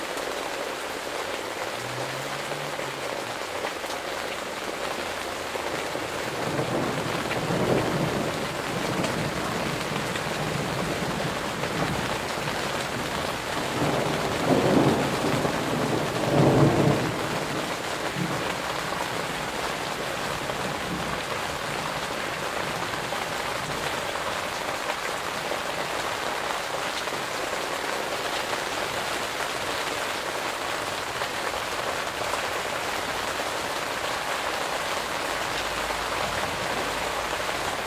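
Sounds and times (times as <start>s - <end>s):
summer rain pattering in a garden under a greenhouse: 0.0s - 37.8s
thunder rumbling: 5.5s - 24.1s.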